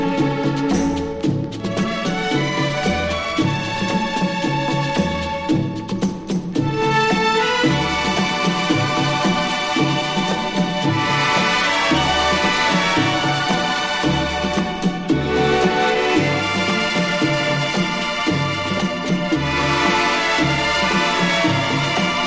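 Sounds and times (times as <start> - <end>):
jungle drums: 0.0 - 22.2.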